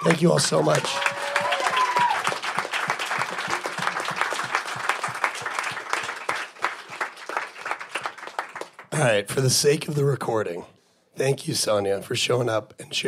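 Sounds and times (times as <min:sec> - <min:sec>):
speech: 0:00.0 - 0:01.2, 0:09.0 - 0:13.0
audience applause: 0:00.0 - 0:09.0.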